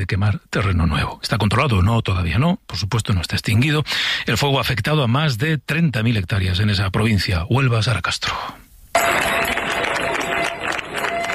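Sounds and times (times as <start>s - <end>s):
speech: 0.0s - 9.3s
residents of Niebla applauding departing emergency unit troops: 9.0s - 11.3s.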